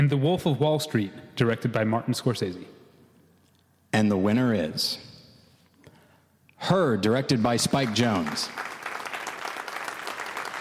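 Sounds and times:
speech: 0.0 - 2.8, 3.9 - 5.1, 6.6 - 8.7
crowd applauding: 7.6 - 10.5.

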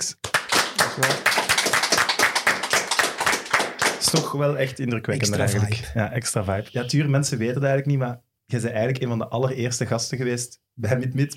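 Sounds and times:
studio applause: 0.0 - 4.4
speech: 4.1 - 11.3.

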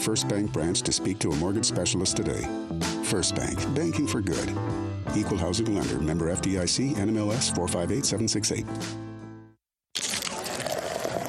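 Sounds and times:
speech: 0.0 - 9.1
Coors Light beer pouring from a can: 9.9 - 11.2.

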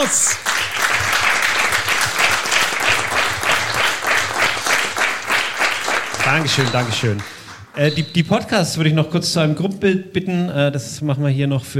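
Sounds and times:
speech: 0.0 - 0.4, 6.3 - 11.7
audience applause: 0.0 - 7.8.

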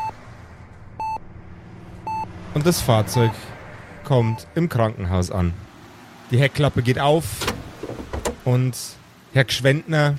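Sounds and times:
vital signs monitor beeping: 2.0 - 2.3
speech: 2.6 - 5.7, 6.3 - 7.5, 8.4 - 10.1.

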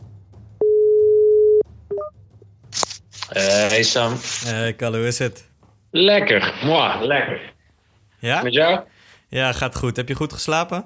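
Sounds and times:
telephone ringing tone while calling: 0.6 - 2.1
speech: 3.3 - 7.5, 8.2 - 10.8.

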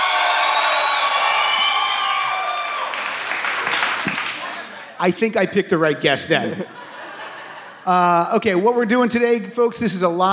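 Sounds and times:
crowd applauding: 0.0 - 5.1
speech: 5.0 - 6.8, 7.8 - 10.3
laughter: 6.2 - 8.6.

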